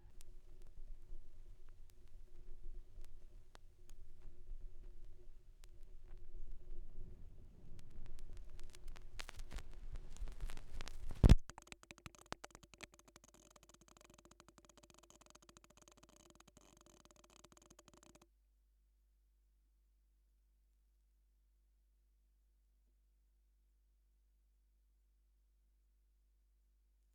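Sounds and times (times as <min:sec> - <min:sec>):
vinyl record noise: 0:00.2 - 0:18.2.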